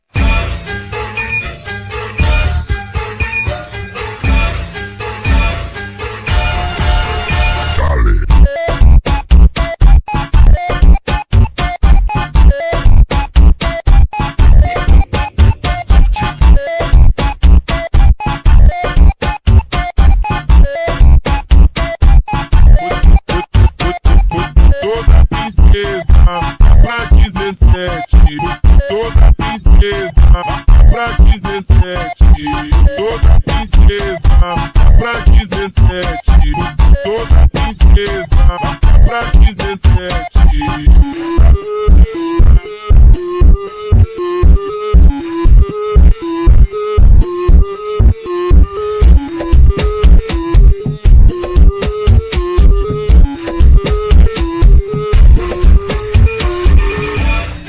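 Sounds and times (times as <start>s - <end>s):
boosted bass: 0.1s - 57.6s.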